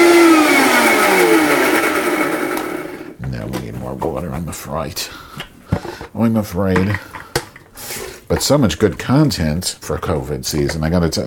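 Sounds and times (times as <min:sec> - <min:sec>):
kitchen blender running: 0:00.0 - 0:03.2
speech: 0:04.7 - 0:05.5, 0:06.2 - 0:07.2, 0:08.3 - 0:11.2.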